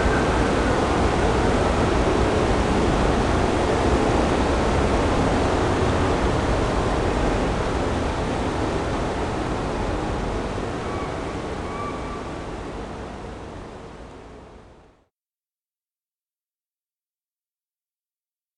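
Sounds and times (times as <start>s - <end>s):
water ambience: 0.0s - 14.6s.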